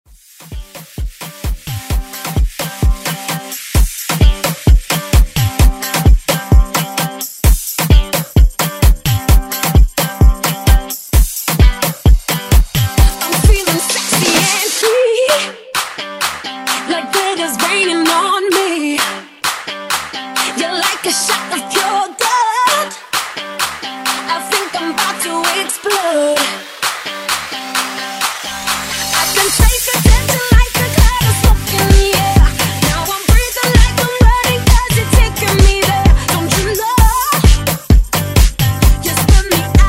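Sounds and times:
epic afrobeat intro music: 0.1s - 39.8s.

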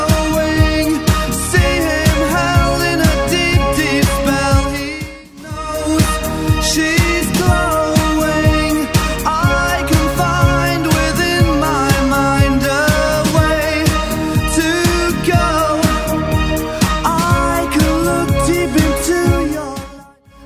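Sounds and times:
80s style music at 122 bpm: 0.0s - 20.4s.

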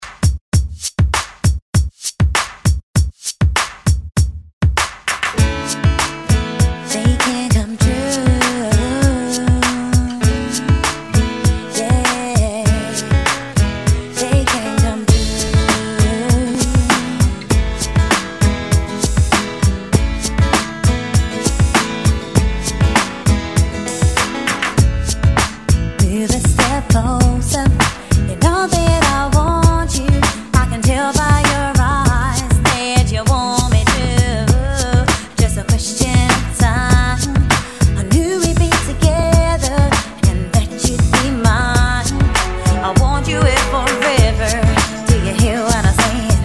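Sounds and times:
90s ReDrum drum beat at 99 BPM: 0.0s - 46.4s.

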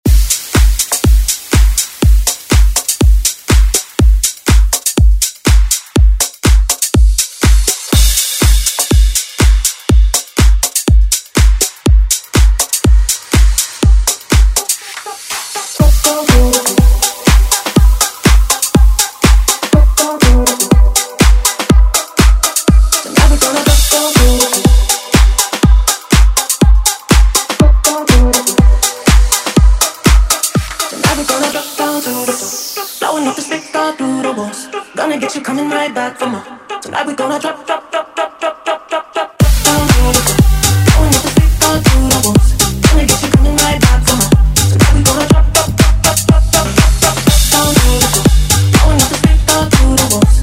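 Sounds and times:
dance music: 0.0s - 50.4s.

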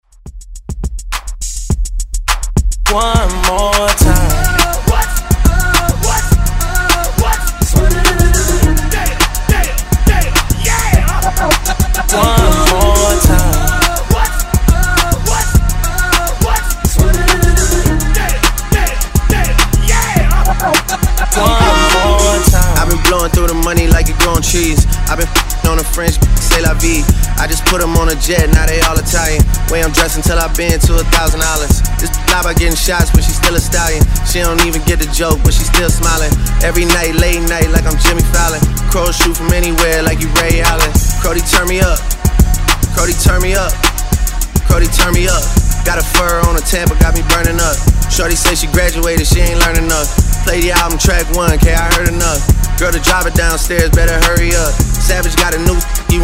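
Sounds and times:
Redrum drum machine beat: 0.0s - 56.2s.

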